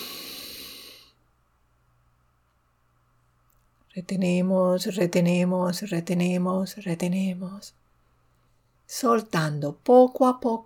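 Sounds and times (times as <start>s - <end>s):
deep inhalation during a guided breathing exercise: 0.0s - 1.2s
speech: 3.9s - 7.8s, 8.9s - 10.6s.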